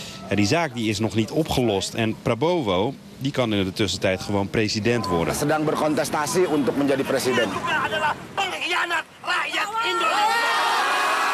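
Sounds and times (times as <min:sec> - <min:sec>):
speech: 0:00.3 - 0:10.6
crowd of demonstrators shouting and chanting: 0:08.8 - 0:11.3.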